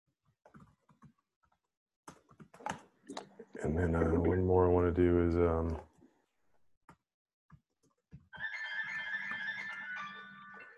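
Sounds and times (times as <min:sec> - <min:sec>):
speech: 0:03.6 - 0:05.9
jazzy melodic phone ringtone: 0:08.4 - 0:10.7.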